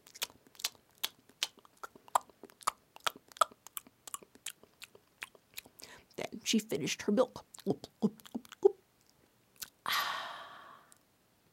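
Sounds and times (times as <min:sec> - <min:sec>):
voice imitating crunching tortilla chips: 0:00.0 - 0:05.7, 0:07.2 - 0:08.8
speech: 0:06.5 - 0:08.2.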